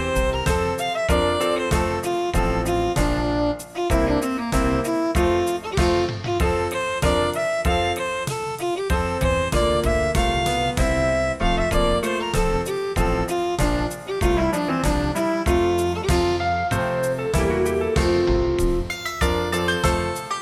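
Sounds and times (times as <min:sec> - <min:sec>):
midi music: 0:00.0 - 0:20.4.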